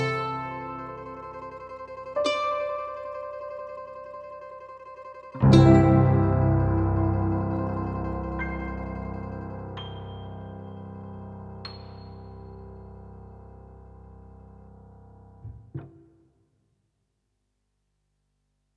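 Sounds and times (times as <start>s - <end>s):
piano mix: 0.0s - 16.2s.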